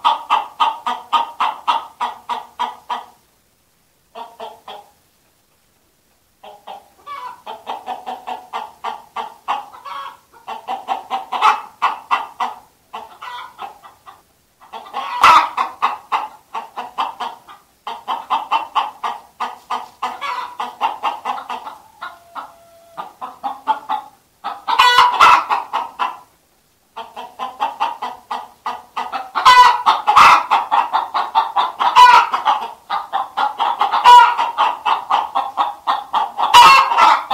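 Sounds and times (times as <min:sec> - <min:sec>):
chickens in a henhouse: 0:00.0 - 0:37.3.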